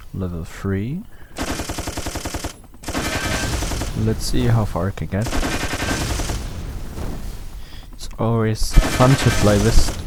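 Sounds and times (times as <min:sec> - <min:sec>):
speech: 0:00.1 - 0:01.4, 0:04.0 - 0:05.7, 0:08.2 - 0:10.0
machine gun firing in a video game: 0:01.4 - 0:07.7, 0:08.7 - 0:10.0.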